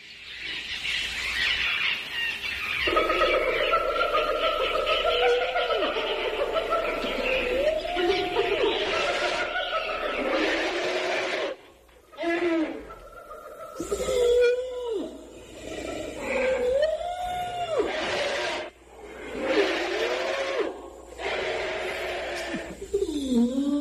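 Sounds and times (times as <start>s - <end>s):
sounds from a phonograph record: 0.0s - 23.7s
laughter: 2.9s - 10.4s.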